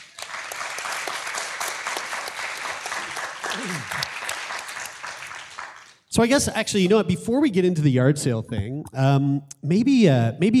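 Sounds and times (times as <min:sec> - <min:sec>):
live audience applause: 0:00.0 - 0:06.0
speech: 0:06.1 - 0:10.5.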